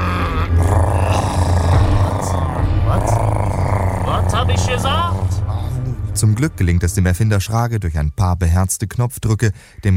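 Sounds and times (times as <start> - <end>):
loud stomachs growling from hunger: 0.0 - 5.7
speech: 6.2 - 9.9.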